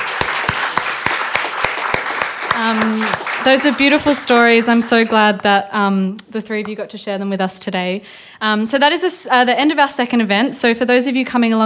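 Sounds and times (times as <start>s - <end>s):
audience applause: 0.0s - 5.1s
speech: 2.6s - 11.6s.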